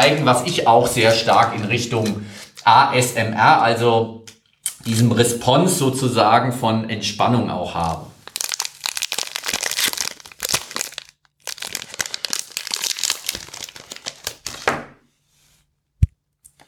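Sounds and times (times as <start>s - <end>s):
speech: 0.0s - 4.2s, 4.8s - 8.1s
chocolate bar broken inside its foil wrapper: 8.2s - 14.7s.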